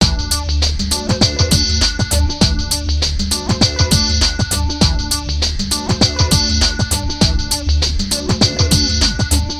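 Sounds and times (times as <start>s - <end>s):
synth arpeggio: 0.0s - 9.5s.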